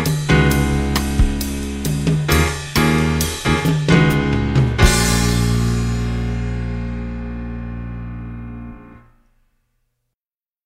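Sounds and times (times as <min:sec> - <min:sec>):
drums: 0:00.0 - 0:07.3.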